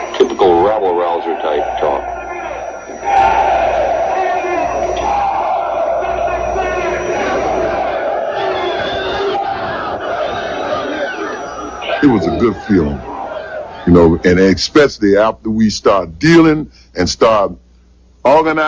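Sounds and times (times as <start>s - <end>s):
loud crowd shouting responses to speaker: 0.0s - 14.4s
speech: 12.2s - 13.1s, 13.8s - 17.6s, 18.2s - 18.6s.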